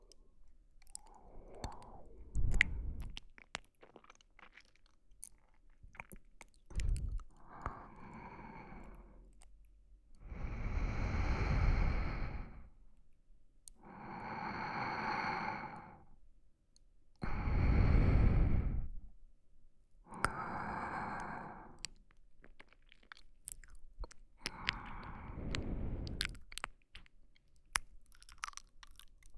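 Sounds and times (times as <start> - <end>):
sleeping breathing: 1.1 - 3.2, 6.8 - 9.2, 10.2 - 12.8, 13.8 - 16.1, 17.2 - 19.0, 20.2 - 21.8, 24.4 - 26.4.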